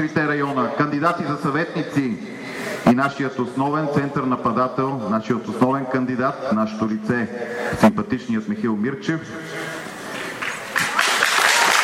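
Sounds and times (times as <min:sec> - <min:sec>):
speech: 0:00.0 - 0:09.6
crowd applauding a candidate at a local-election campaign rally: 0:09.9 - 0:11.8.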